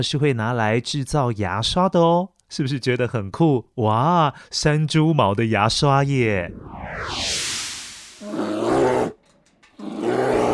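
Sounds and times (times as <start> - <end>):
speech: 0.0 - 7.5
bear roaring: 8.2 - 10.5.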